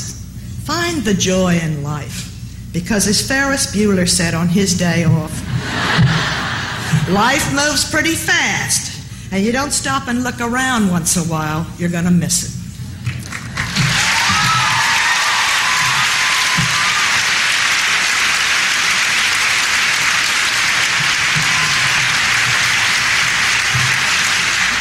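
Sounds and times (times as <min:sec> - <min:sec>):
speech: 0:00.9 - 0:06.4, 0:07.1 - 0:12.6
laughter: 0:05.4 - 0:07.2
audience applause: 0:13.1 - 0:24.7.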